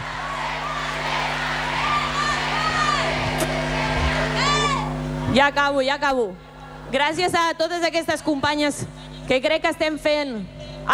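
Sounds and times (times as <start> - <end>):
large crowd chanting at a footballer during a women's team Champions League celebration: 0.0 - 5.3
speech: 5.3 - 10.9.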